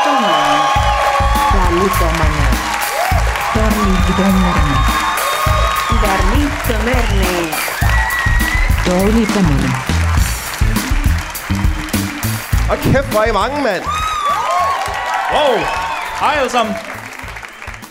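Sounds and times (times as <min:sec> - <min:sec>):
audience whooping and shouting at Bremen Teater: 0:00.0 - 0:10.2, 0:13.6 - 0:17.8
audience clapping at Bremen Teater: 0:00.0 - 0:17.8
speech: 0:01.8 - 0:02.3, 0:04.1 - 0:05.0, 0:06.0 - 0:07.8, 0:08.9 - 0:09.9, 0:12.7 - 0:14.0, 0:15.3 - 0:16.9.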